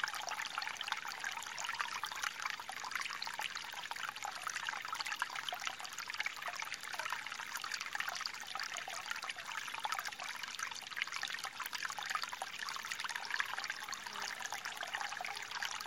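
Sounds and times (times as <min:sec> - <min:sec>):
forest stream: 0:00.0 - 0:15.8.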